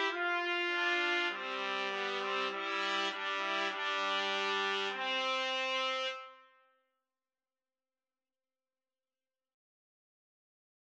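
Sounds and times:
trumpet duet playing a wedding march: 0:00.0 - 0:06.5.

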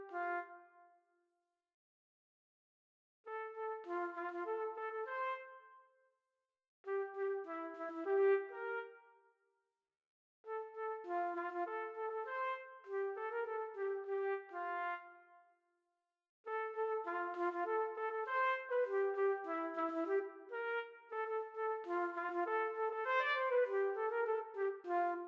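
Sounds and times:
trumpet duet: 0:00.0 - 0:00.7, 0:03.3 - 0:05.6, 0:06.9 - 0:09.0, 0:10.5 - 0:15.2, 0:16.5 - 0:25.2.

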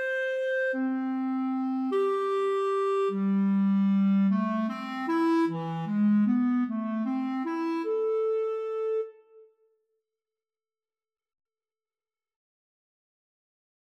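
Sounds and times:
flute and clarinet duet: 0:00.0 - 0:09.4.

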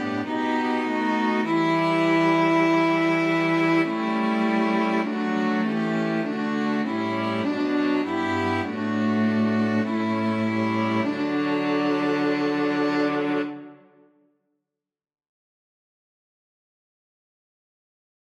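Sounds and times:
string quartet: 0:00.0 - 0:14.0.

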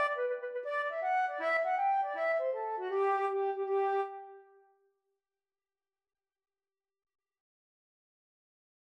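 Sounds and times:
flute playing a hornpipe: 0:00.0 - 0:04.4.

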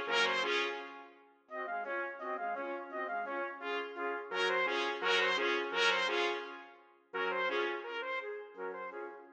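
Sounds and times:
trumpet quartet: 0:00.0 - 0:09.3.

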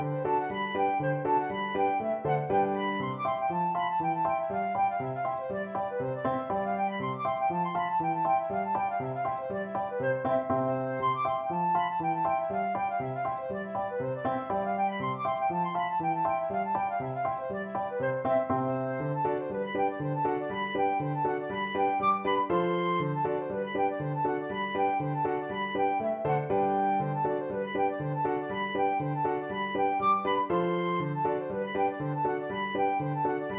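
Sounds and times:
flute playing polka: 0:00.0 - 0:33.5.

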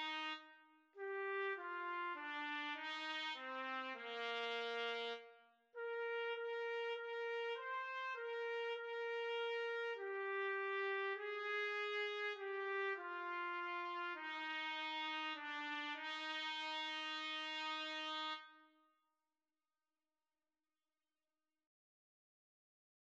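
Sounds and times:
trumpet and trombone duet: 0:00.0 - 0:00.4, 0:01.0 - 0:05.2, 0:05.8 - 0:18.4.

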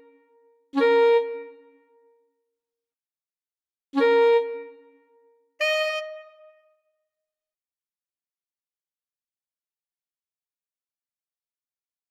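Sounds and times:
saxophone duet: 0:00.8 - 0:01.8, 0:04.0 - 0:04.9, 0:05.6 - 0:06.6.

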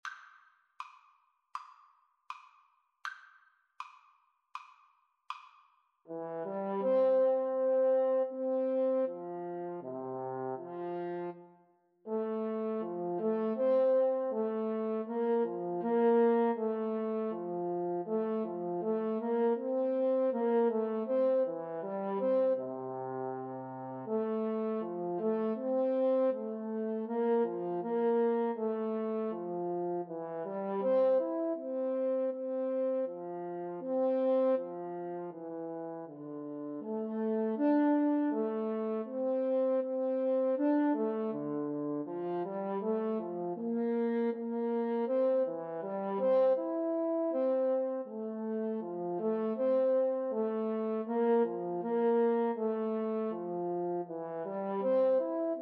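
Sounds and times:
clarinet and French horn duet: 0:06.1 - 0:55.6.

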